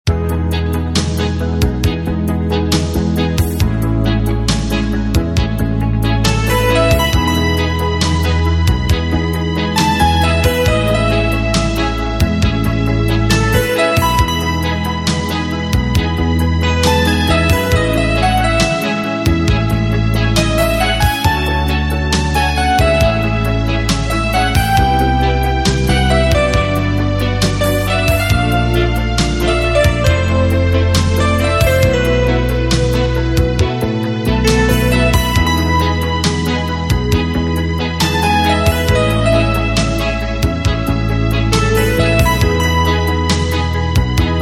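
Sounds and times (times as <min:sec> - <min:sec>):
romantic music: 0:00.0 - 0:44.4.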